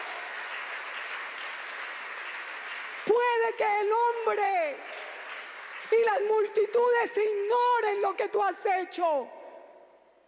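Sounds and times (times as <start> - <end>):
audience applause: 0.0 - 6.7
speech: 3.1 - 5.0, 5.9 - 9.4.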